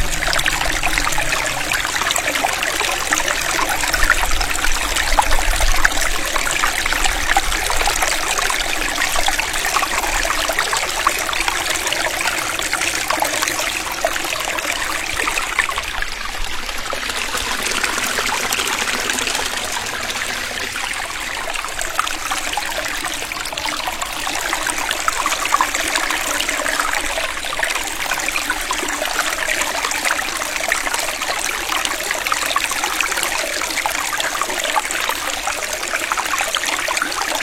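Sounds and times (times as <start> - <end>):
faint low rumble: 0.0 - 6.3, 15.6 - 22.2
gentle mountain stream in Longgang: 0.0 - 37.4.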